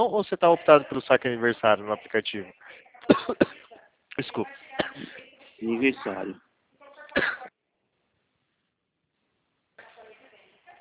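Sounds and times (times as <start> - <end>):
speech: 0.0 - 3.6, 4.2 - 6.4, 7.2 - 7.5
person coughing after choking: 3.0 - 3.7, 4.8 - 5.2, 7.2 - 7.5.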